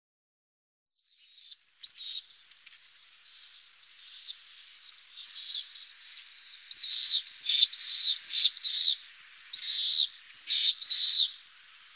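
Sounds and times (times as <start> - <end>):
pallid swifts giving harsh trilled screams: 1.0 - 11.9.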